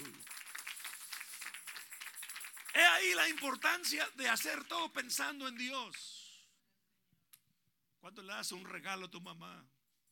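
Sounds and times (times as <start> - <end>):
audience applause: 0.0 - 4.6
speech: 3.0 - 6.2, 8.0 - 9.8.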